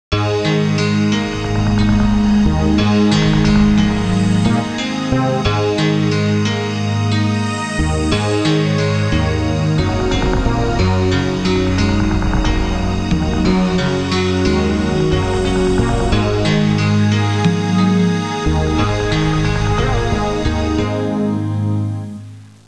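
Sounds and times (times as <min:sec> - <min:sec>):
electronic music: 0:00.2 - 0:22.6.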